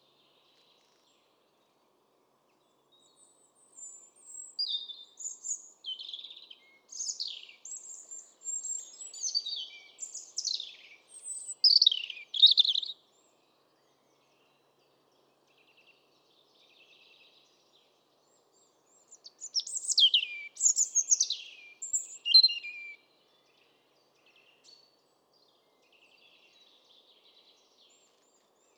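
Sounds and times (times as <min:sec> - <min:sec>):
European robin song of high warbled phrases: 0:03.8 - 0:13.0, 0:19.1 - 0:23.0.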